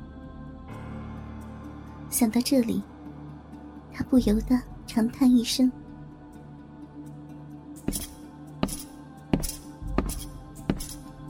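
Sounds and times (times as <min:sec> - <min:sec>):
speech: 0:02.1 - 0:02.9, 0:04.0 - 0:05.8
heavy footsteps at walking pace: 0:07.8 - 0:11.1.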